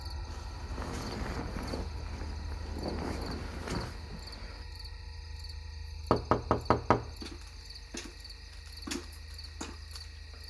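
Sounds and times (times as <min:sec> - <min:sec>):
steady high chirring hum: 0:00.0 - 0:10.4
insistent knocking on a door: 0:06.1 - 0:07.4.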